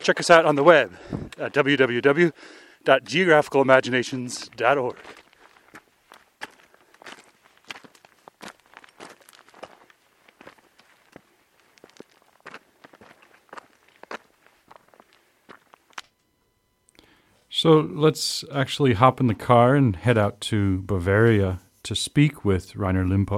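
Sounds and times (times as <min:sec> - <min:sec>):
footsteps crunching up a gravel mountain path on the Untersberg: 0:00.0 - 0:02.0, 0:04.4 - 0:16.1
speech: 0:00.0 - 0:05.2, 0:17.6 - 0:23.3.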